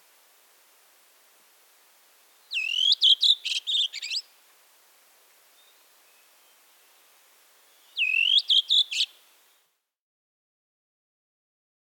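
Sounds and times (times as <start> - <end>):
redwing song: 2.5 - 4.2, 7.9 - 9.1.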